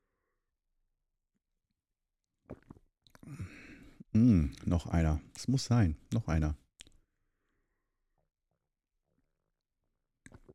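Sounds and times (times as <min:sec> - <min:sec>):
soft mouth noises: 0:02.5 - 0:03.5, 0:10.2 - 0:10.5
speech: 0:04.2 - 0:06.6.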